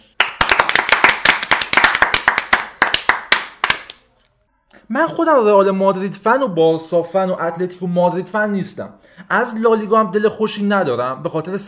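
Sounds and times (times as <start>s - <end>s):
small group applauding with hand claps: 0.0s - 4.0s
speech: 4.9s - 11.6s.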